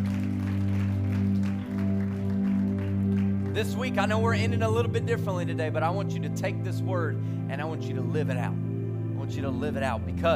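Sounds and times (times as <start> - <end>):
audience clapping: 0.0 - 4.0
speech: 3.6 - 8.6, 9.2 - 10.3.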